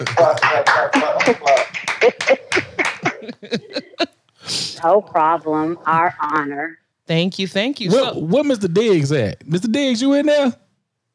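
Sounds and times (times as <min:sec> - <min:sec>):
speech: 0:00.0 - 0:02.4, 0:04.8 - 0:10.6
clapping: 0:00.0 - 0:03.2
laughter: 0:00.0 - 0:04.2.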